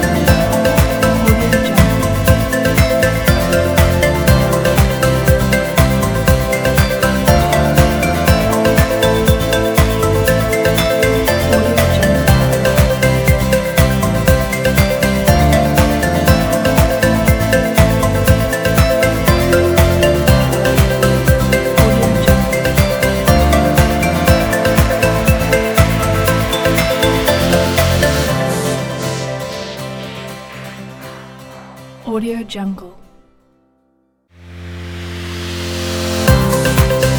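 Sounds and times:
upbeat uplifting corporate music: 0.0s - 31.1s, 35.4s - 37.1s.

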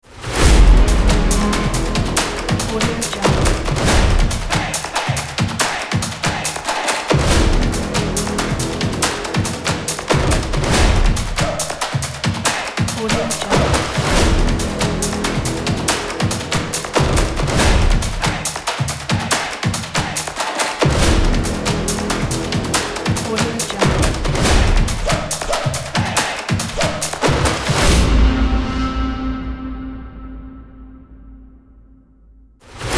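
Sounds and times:
action drums: 0.3s - 29.2s.

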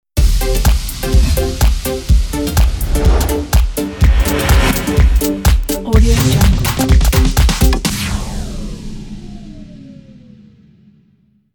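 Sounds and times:
deep house music for a fashion logo: 0.2s - 7.9s.

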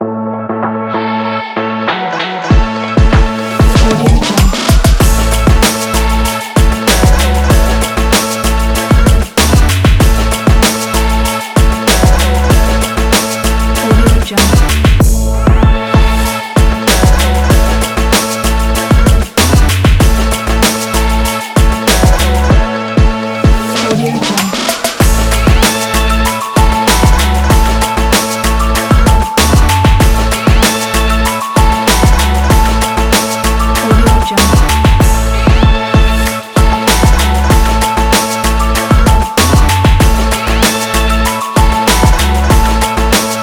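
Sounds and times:
lifestyle vlog hip hop beat: 0.0s - 43.4s.

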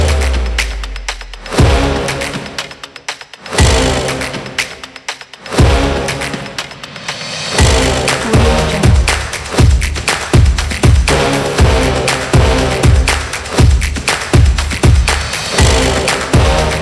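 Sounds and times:
drums: 0.0s - 16.7s
brass: 1.4s - 9.6s, 11.0s - 13.7s, 15.4s - 16.7s.

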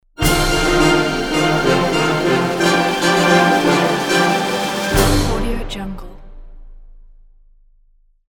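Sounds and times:
cartoon animation logo music cues: 0.2s - 6.2s.

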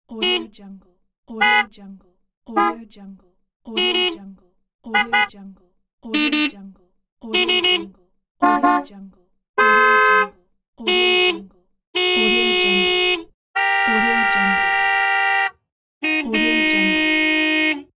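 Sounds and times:
car horn: 0.2s - 0.5s, 1.4s - 1.7s, 2.6s - 2.8s, 3.8s - 4.2s, 4.9s - 5.4s, 6.2s - 6.6s, 7.3s - 8.9s, 9.6s - 17.9s.

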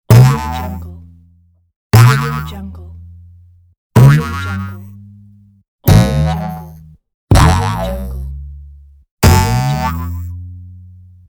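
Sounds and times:
boing: 0.1s - 1.0s, 2.0s - 2.5s, 4.0s - 5.0s, 5.9s - 8.3s, 9.2s - 10.4s.

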